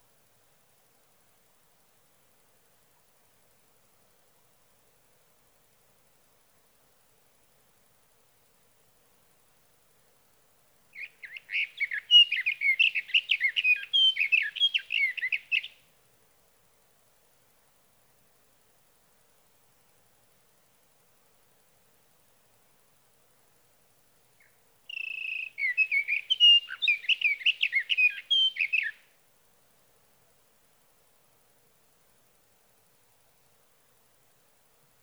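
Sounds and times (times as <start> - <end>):
Sage thrasher singing through the night: 11.0 - 15.8, 24.4 - 29.0.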